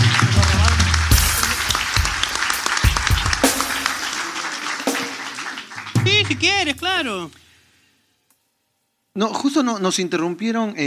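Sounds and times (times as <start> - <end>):
audience applause: 0.0 - 7.3
speech: 6.3 - 7.4, 9.2 - 10.8.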